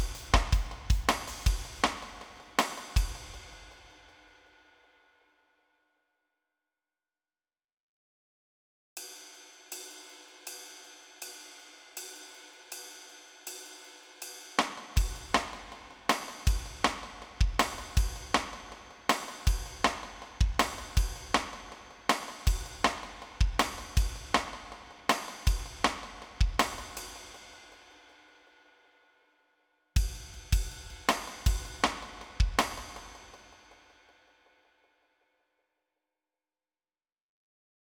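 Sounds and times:
town drums playing: 0.0s - 3.8s, 14.6s - 27.4s, 30.0s - 33.5s.

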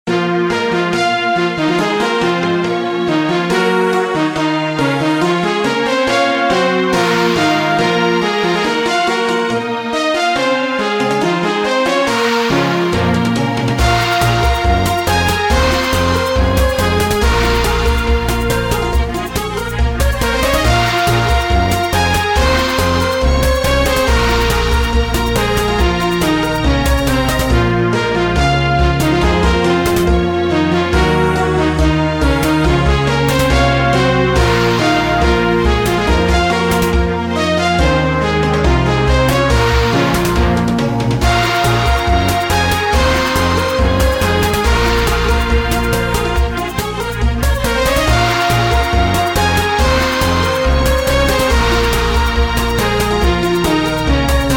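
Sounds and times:
music in a cave: 0.0s - 54.5s.

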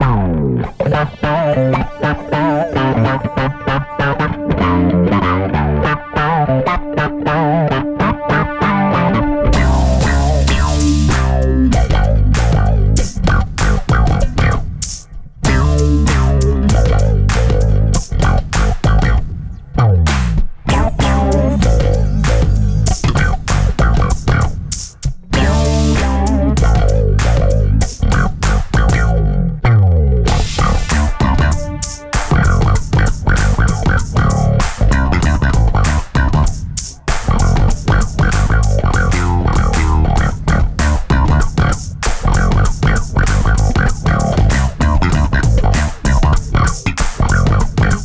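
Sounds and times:
dark funk music: 0.0s - 48.0s.

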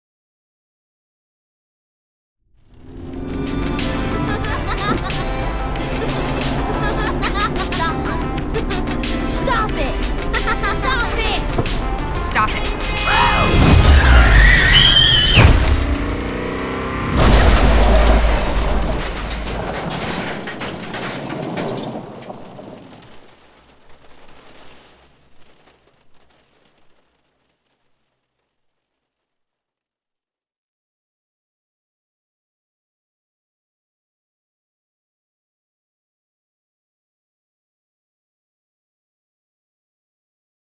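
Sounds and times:
glitch crash: 2.7s - 26.4s.

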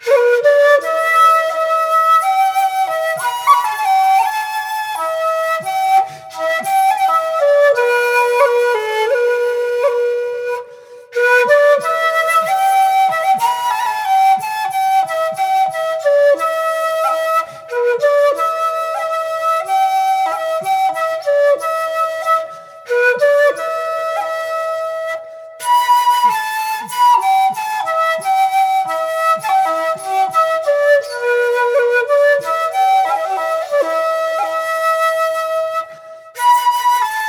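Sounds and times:
wooden flutes: 0.0s - 37.2s.

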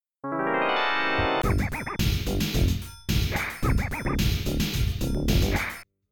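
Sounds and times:
rap tune: 1.4s - 5.8s.

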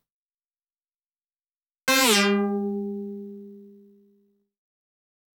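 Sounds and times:
sound effects: 1.9s - 3.8s.

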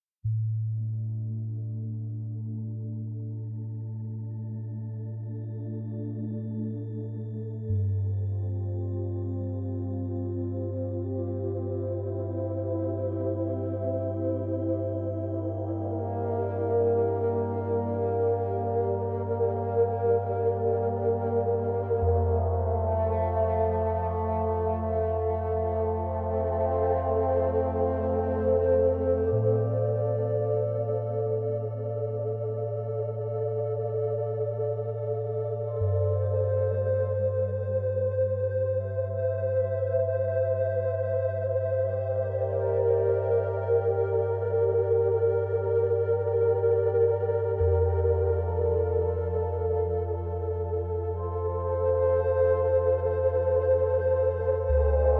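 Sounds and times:
frozen glass medium bass tone: 0.2s - 5.6s, 6.2s - 55.1s.

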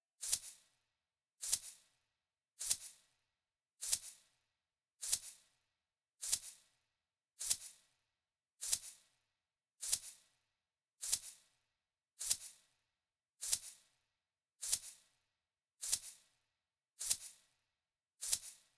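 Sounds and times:
percussion shaker: 0.2s - 0.8s, 1.4s - 2.0s, 2.6s - 3.2s, 3.8s - 6.8s, 7.4s - 8.0s, 8.6s - 9.2s, 9.8s - 10.4s, 11.0s - 11.6s, 12.2s - 12.8s, 13.4s - 16.4s, 17.0s - 17.6s, 18.2s - 18.7s.

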